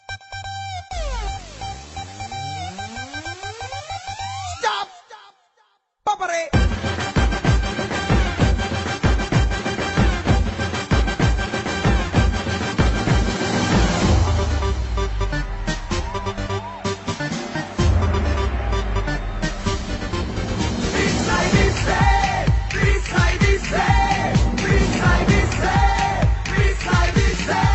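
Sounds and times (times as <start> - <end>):
anthem music: 6.6 - 27.7.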